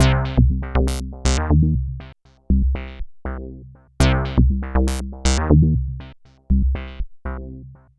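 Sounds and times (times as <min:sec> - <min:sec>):
proto-techno bassline: 0:00.0 - 0:07.7.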